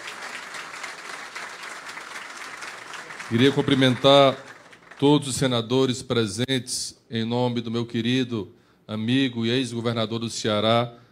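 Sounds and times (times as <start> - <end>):
round of applause: 0.0 - 5.4
speech: 3.3 - 11.0.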